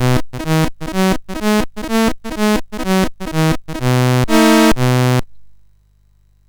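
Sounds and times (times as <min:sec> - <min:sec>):
MOS6581R2 chip game music: 0:00.0 - 0:04.8.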